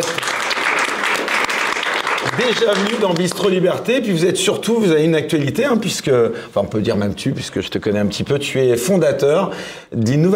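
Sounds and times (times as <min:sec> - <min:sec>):
audience applause: 0:00.0 - 0:03.6
speech: 0:02.4 - 0:10.3.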